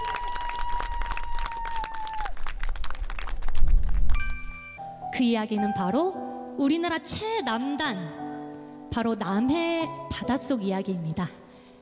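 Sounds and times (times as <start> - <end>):
audience applause: 0.0 - 3.7
sustained tone: 4.2 - 4.8
speech: 5.2 - 8.2, 8.9 - 11.4.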